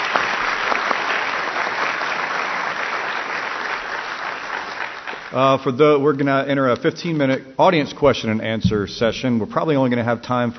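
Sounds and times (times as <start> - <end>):
audience applause for debaters: 0.0 - 5.5
speech: 5.3 - 10.5.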